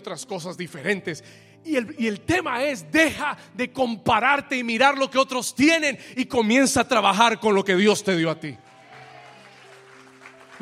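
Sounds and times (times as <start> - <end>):
speech: 0.0 - 8.7
audience applause: 8.6 - 10.6.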